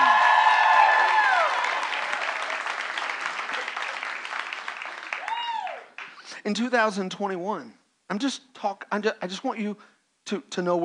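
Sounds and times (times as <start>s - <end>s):
whoops and cheers: 0.0s - 2.7s, 5.1s - 6.0s
audience applause: 0.0s - 6.2s
speech: 6.4s - 10.8s.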